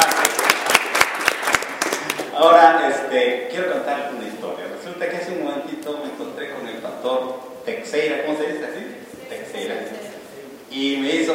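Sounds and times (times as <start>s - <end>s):
audience applause: 0.0s - 2.3s
speech: 2.4s - 10.0s, 10.7s - 11.3s.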